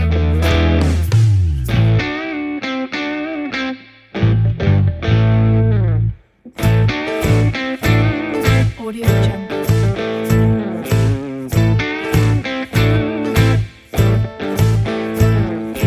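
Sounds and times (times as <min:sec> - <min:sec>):
heavy southern style acoustic rock music: 0:00.0 - 0:15.8.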